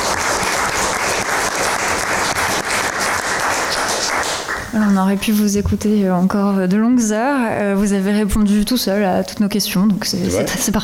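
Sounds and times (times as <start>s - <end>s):
audience applause: 0.0s - 5.0s
speech: 4.7s - 10.8s.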